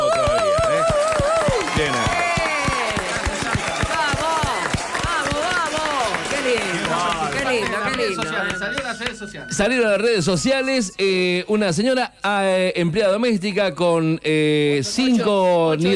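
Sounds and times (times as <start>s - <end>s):
steady dense rapid applause: 0.0s - 9.3s
speech: 8.2s - 15.9s.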